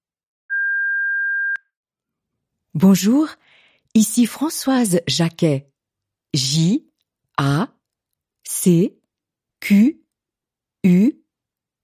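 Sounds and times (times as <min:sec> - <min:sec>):
voicemail beep tone: 0:00.5 - 0:01.7
speech: 0:02.8 - 0:05.7, 0:06.3 - 0:07.8, 0:08.5 - 0:09.0, 0:09.6 - 0:10.0, 0:10.8 - 0:11.2.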